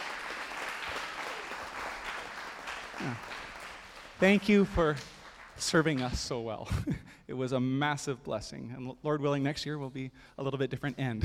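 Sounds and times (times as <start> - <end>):
audience applause: 0.0 - 6.0
speech: 3.0 - 3.4, 4.2 - 11.2.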